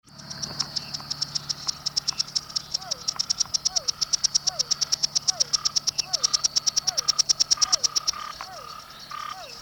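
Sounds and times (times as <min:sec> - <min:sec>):
silver-adorned treefrog chorus: 0:00.0 - 0:09.6.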